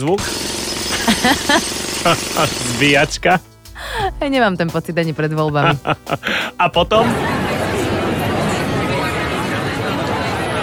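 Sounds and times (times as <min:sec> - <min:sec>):
speech: 0:00.0 - 0:00.5, 0:01.2 - 0:07.3
laughter: 0:00.9 - 0:03.4, 0:05.4 - 0:10.6
dense crowd of people chattering: 0:06.6 - 0:10.6.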